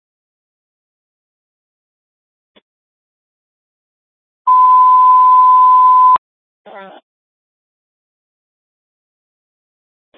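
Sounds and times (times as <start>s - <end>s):
Webster Fire Department radio alert testing tones: 4.5s - 6.2s.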